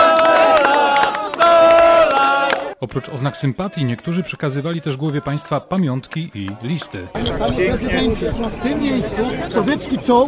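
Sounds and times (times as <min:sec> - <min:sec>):
crowd booing a questioner at a presidential visit: 0:00.0 - 0:04.4
speech: 0:02.8 - 0:10.2.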